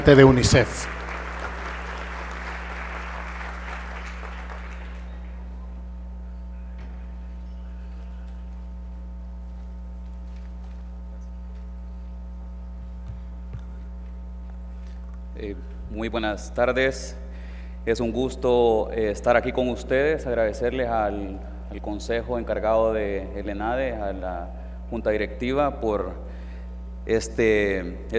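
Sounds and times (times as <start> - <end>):
speech: 0.0 - 1.0, 16.0 - 17.2, 17.8 - 26.4, 27.1 - 28.1
audience applause: 0.0 - 5.8.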